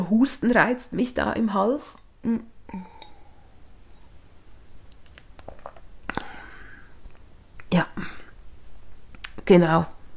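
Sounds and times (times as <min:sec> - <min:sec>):
speech: 0:00.1 - 0:02.9, 0:09.5 - 0:10.0
person sipping water: 0:02.7 - 0:04.1.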